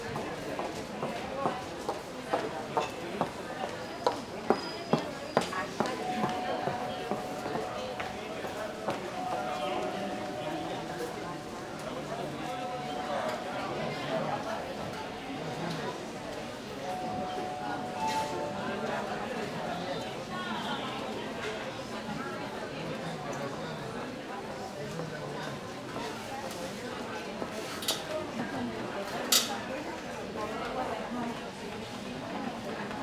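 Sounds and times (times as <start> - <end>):
murmur of people in a sanatorium entrance hall: 0.0 - 33.0
call bells ringing in a sanatorium entrance hall: 6.0 - 19.7.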